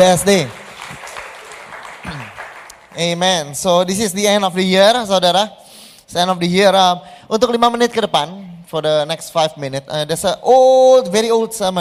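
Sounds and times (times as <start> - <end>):
speech: 0.0 - 0.6, 3.0 - 11.8
crowd applause: 0.0 - 3.2.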